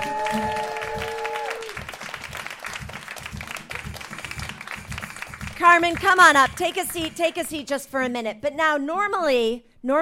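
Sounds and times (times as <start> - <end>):
audience applause for arriving guest: 0.0 - 7.4
speech: 5.6 - 9.9.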